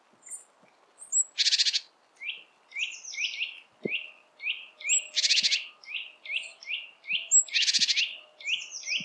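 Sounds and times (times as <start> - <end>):
great tit churring: 1.5 - 9.0.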